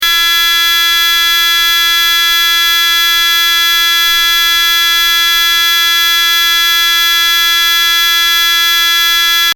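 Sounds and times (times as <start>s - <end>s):
buzzer: 0.0s - 9.5s.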